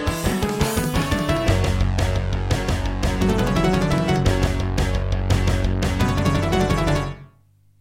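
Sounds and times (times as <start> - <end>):
sound card wavetable synthesizer music intro: 0.2 - 1.8, 3.1 - 7.4.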